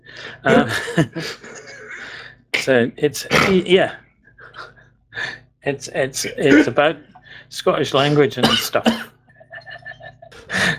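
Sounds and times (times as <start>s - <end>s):
soft voiced sounds: 0.2s - 0.9s, 1.7s - 10.7s
speech: 0.3s - 1.5s, 2.6s - 4.0s, 5.6s - 9.1s
person coughing: 0.5s - 1.9s, 3.3s - 3.7s, 6.3s - 6.9s, 8.0s - 9.2s, 10.4s - 10.7s
laughter: 0.5s - 2.1s, 4.4s - 4.8s, 6.2s - 7.0s, 9.3s - 10.7s.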